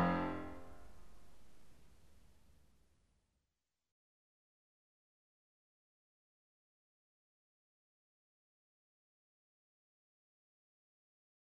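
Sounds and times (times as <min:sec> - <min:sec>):
piano sonata in F major: 0:00.0 - 0:00.8.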